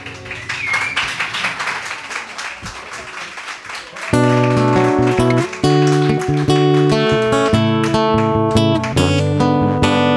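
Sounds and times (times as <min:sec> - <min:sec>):
audience applause: 0:00.0 - 0:10.0.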